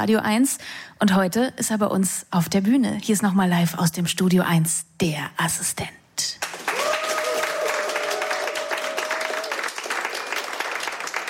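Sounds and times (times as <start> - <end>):
speech: 0.0 - 6.5
studio audience applause: 6.4 - 11.2.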